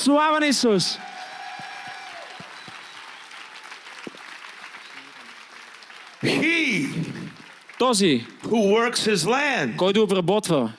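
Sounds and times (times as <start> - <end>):
speech: 0.0 - 1.2, 7.8 - 10.7
audience applause: 0.9 - 9.5.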